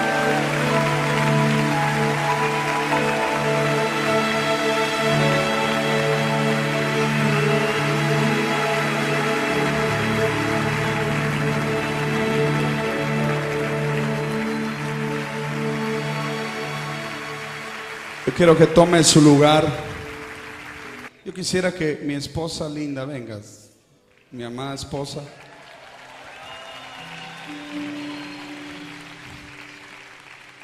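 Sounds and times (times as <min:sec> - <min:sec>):
audience clapping hands: 0:00.0 - 0:21.1, 0:24.1 - 0:30.6
speech: 0:18.3 - 0:19.9, 0:21.3 - 0:23.6, 0:24.3 - 0:25.4.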